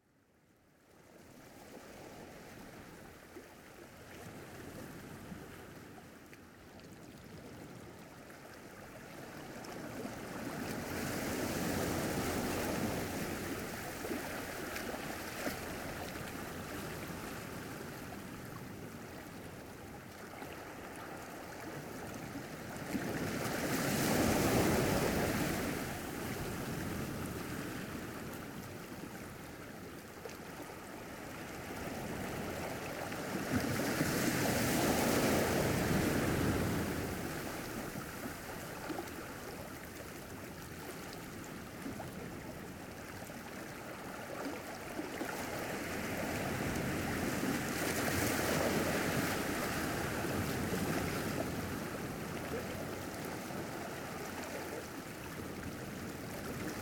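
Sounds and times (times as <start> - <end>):
ocean waves: 1.2 - 56.8.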